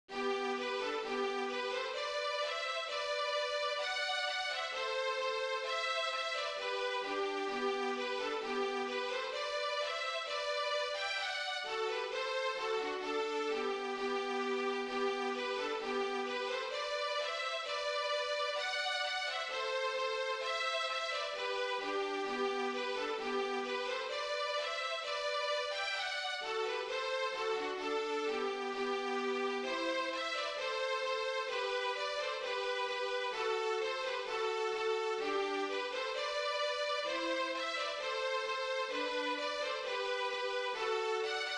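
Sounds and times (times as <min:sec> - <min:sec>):
schottische dance music: 0:00.1 - 0:41.5.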